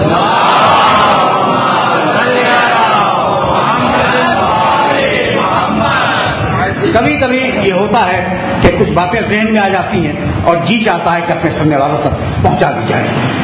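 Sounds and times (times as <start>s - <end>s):
crowd at a religious gathering shouting a slogan in unison: 0.0s - 6.8s
speech: 7.9s - 13.4s.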